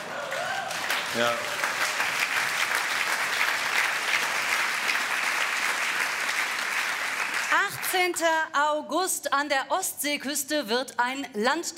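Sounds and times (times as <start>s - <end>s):
applause: 0.0s - 8.2s
speech: 1.2s - 1.6s, 7.7s - 11.7s.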